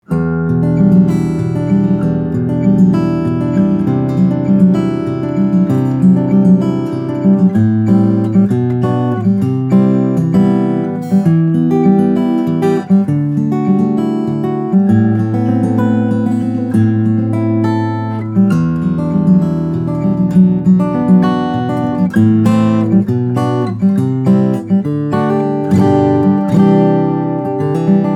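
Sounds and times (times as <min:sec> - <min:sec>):
steel string flattop guitars: 0:00.0 - 0:28.1.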